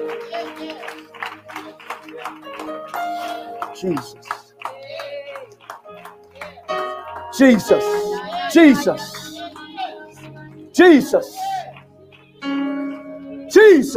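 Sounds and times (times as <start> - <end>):
audience hand clapping: 0.0 - 13.9
speech: 3.8 - 4.3, 7.4 - 9.2, 10.8 - 11.4, 13.7 - 13.9.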